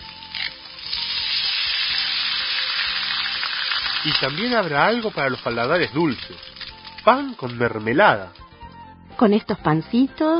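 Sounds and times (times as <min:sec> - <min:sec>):
eggs frying in a pan: 0:00.0 - 0:08.7
speech: 0:04.0 - 0:08.4, 0:09.2 - 0:10.3.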